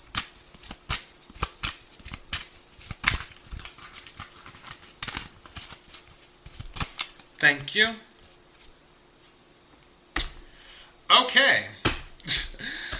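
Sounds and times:
tarot cards being shuffled and drawn: 0.0s - 7.6s
speech: 7.4s - 8.1s, 11.2s - 12.4s.

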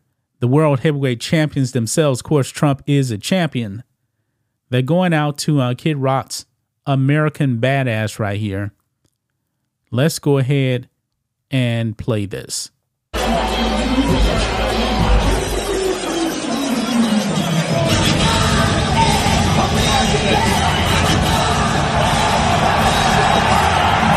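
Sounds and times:
speech: 0.4s - 3.9s, 4.7s - 8.8s, 9.9s - 10.9s, 11.5s - 15.3s
arena crowd cheering and yelling: 13.2s - 24.1s.

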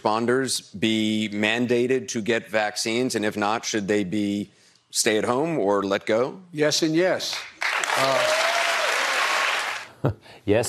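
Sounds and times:
speech: 0.0s - 8.4s, 10.0s - 10.6s
audience applause: 7.5s - 9.9s.

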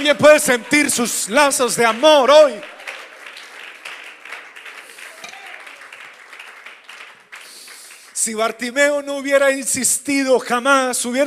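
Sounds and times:
speech: 0.0s - 2.8s, 8.2s - 11.2s
audience applause: 0.0s - 8.2s.

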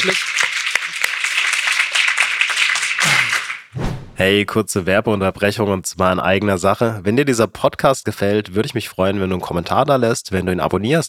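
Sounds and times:
speech: 0.0s - 0.4s, 4.2s - 11.0s
applause: 0.0s - 3.8s.

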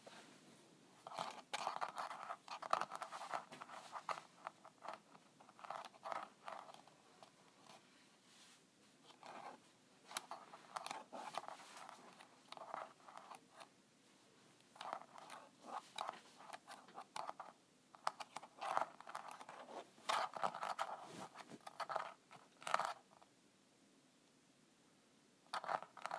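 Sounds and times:
scratching at a calculator: 1.0s - 7.9s, 9.0s - 13.7s, 14.7s - 23.3s, 25.5s - 26.1s.

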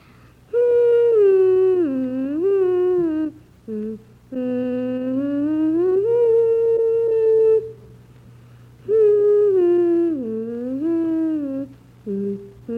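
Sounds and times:
faint low hum: 0.0s - 12.7s
young child humming a slow melody: 0.5s - 8.0s, 8.8s - 12.7s.

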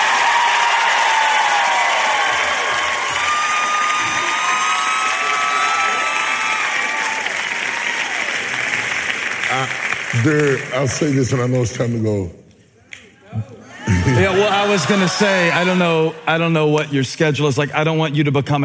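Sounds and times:
high whoops and yells: 0.0s - 8.3s, 13.4s - 15.9s
large crowd cheering and clapping: 0.0s - 11.6s, 13.4s - 17.0s
speech: 10.2s - 12.4s, 14.2s - 18.6s.

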